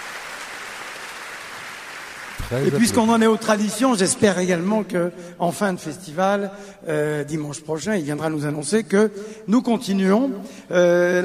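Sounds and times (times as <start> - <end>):
festival audience applauding the mayor of Lyon: 0.0 - 3.5
speech: 2.4 - 11.2.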